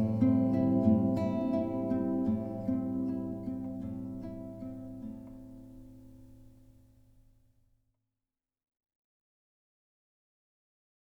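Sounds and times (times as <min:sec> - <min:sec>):
music interlude: 0:00.0 - 0:05.2.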